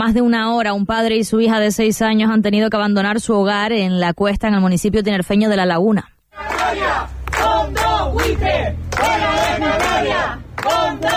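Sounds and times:
speech: 0:00.0 - 0:11.1
neighbours shouting during an eviction: 0:06.4 - 0:11.1.

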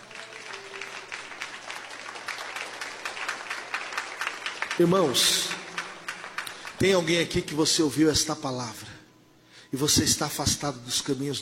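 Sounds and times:
audience applause: 0:00.0 - 0:07.5
speech: 0:04.8 - 0:05.5, 0:06.8 - 0:09.0, 0:09.7 - 0:11.4.

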